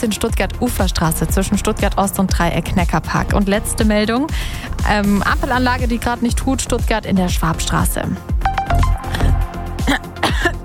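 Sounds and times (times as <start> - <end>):
speech: 0.0 - 9.0, 9.9 - 10.6
coughing after choking on something swallowed the wrong way: 9.1 - 10.6
throat clearing after choking: 9.8 - 10.6.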